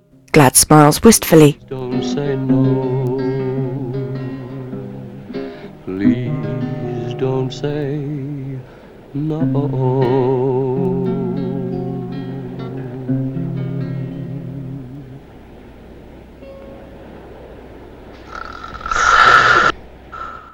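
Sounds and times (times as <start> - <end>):
speech: 0.4 - 2.8, 9.2 - 10.2
wavering sung melody with vibrato: 1.4 - 17.2
loud rasping snore of a drunken man: 18.3 - 20.5.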